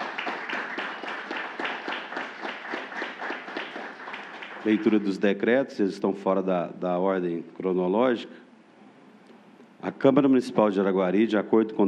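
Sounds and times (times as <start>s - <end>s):
audience applause: 0.0s - 5.2s
speech: 4.6s - 8.4s, 10.0s - 11.8s.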